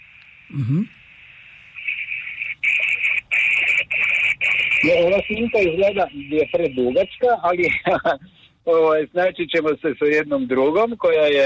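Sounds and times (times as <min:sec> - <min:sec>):
speech: 0:00.5 - 0:01.0, 0:04.8 - 0:11.4
satellite telemetry radio signal high tone: 0:02.8 - 0:07.6.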